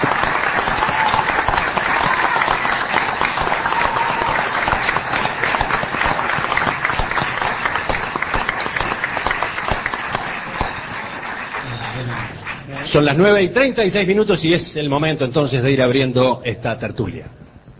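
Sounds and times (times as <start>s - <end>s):
audience applause: 0.0s - 13.2s
speech: 12.9s - 17.4s.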